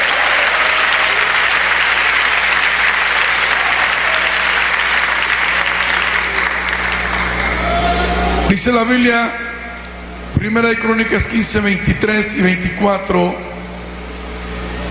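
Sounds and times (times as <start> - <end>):
audience applauding: 0.0 - 8.3
speech: 8.5 - 9.4, 10.4 - 13.5.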